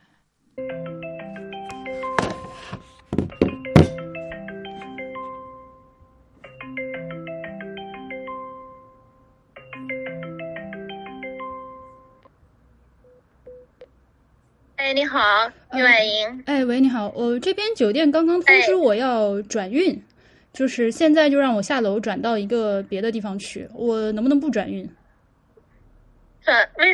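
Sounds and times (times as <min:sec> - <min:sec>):
melodic phone ringtone: 0:00.6 - 0:12.2
speech: 0:15.1 - 0:25.0, 0:26.4 - 0:26.9.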